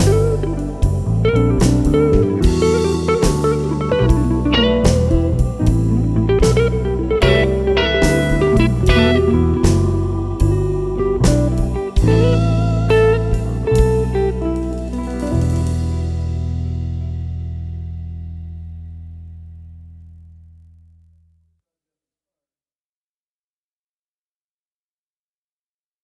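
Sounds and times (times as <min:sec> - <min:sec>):
blues music: 0:00.0 - 0:20.5.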